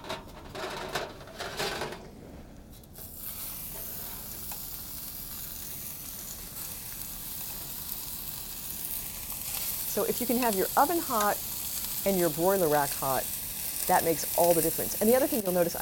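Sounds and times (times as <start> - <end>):
meat searing on a hot preheated pan: 3.0 - 15.8
speech: 10.0 - 15.8.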